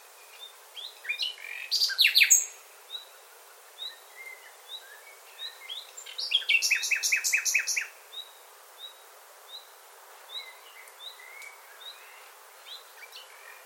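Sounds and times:
bird calling with thin whistle and sharp downslurred chirps: 0:01.1 - 0:02.5, 0:04.2 - 0:07.9.

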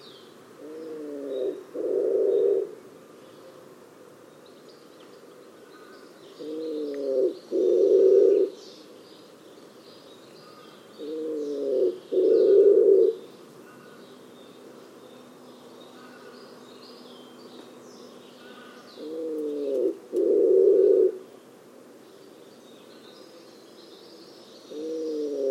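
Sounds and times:
bird cooing in a low register: 0:00.6 - 0:02.8, 0:05.8 - 0:08.6, 0:10.4 - 0:14.1, 0:18.4 - 0:21.3, 0:24.7 - 0:25.5.

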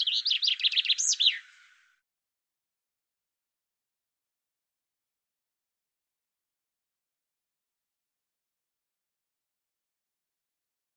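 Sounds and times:
bird singing a high fast trill of chirping notes: 0:00.0 - 0:01.9.

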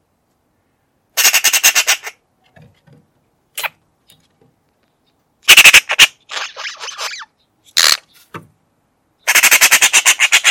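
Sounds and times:
harsh squawking bird calls: 0:01.2 - 0:02.2, 0:05.5 - 0:08.3, 0:09.2 - 0:10.4.

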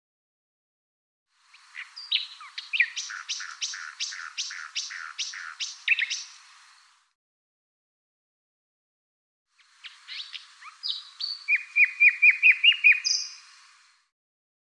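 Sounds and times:
bird chirps and high thin whistles: 0:01.8 - 0:06.3, 0:09.8 - 0:13.4.

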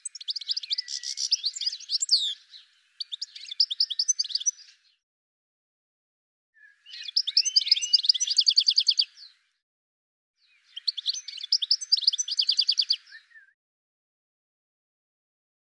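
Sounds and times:
bird calling with rapid high chirps and short trills: 0:00.0 - 0:04.9, 0:06.6 - 0:09.4, 0:10.4 - 0:13.6.

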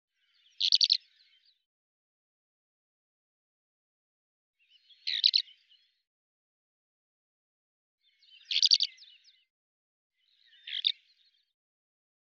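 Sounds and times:
bird song warble of high chirps and slurred whistles: 0:00.1 - 0:01.7, 0:04.6 - 0:06.1, 0:08.0 - 0:09.5, 0:10.2 - 0:11.6.

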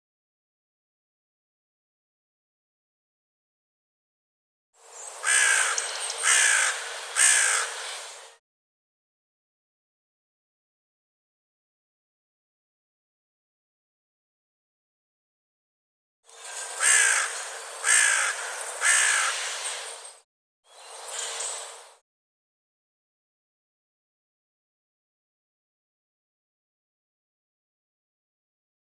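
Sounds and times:
bird hoarse cawing: 0:05.2 - 0:08.4, 0:16.3 - 0:20.1.

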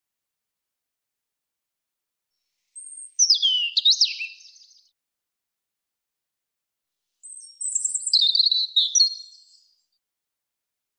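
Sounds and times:
European robin singing high tumbling warbles and trills: 0:02.8 - 0:04.7, 0:07.2 - 0:09.4.

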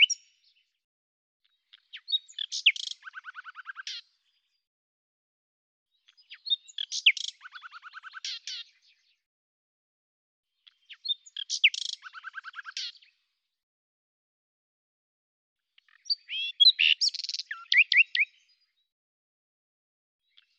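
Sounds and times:
common nightingale singing: 0:00.0 - 0:00.4, 0:01.8 - 0:04.1, 0:06.1 - 0:08.8, 0:10.6 - 0:13.1, 0:15.8 - 0:18.6.

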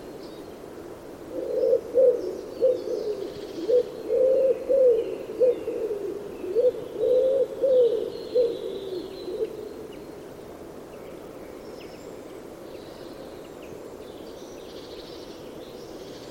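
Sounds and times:
bird cooing with soft low hollow notes: 0:01.3 - 0:10.1.

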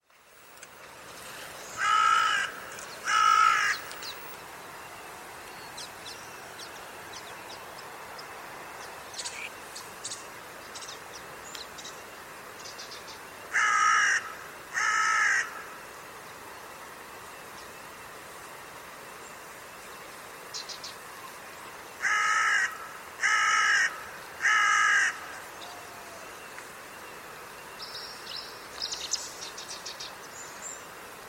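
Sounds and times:
bird harsh caws: 0:01.8 - 0:04.0, 0:13.5 - 0:15.8, 0:22.0 - 0:26.2.

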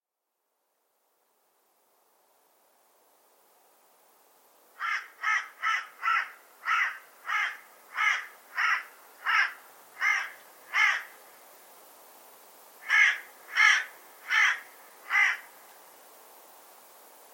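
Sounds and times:
bird cawing: 0:04.8 - 0:11.2, 0:12.8 - 0:15.5.

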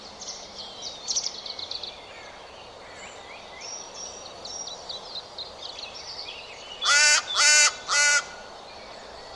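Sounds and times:
harsh buzzy bird caws: 0:06.8 - 0:08.4.

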